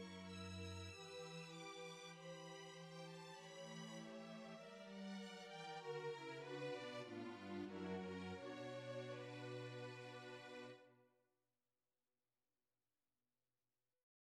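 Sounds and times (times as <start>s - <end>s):
slow classical piece: 0.0s - 10.9s.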